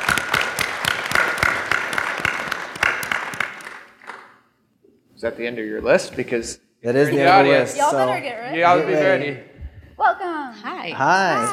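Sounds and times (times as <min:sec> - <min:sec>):
audience applause for a speaker at a tech lightning-talk event: 0:00.0 - 0:04.3
speech: 0:05.2 - 0:09.5, 0:10.2 - 0:11.5.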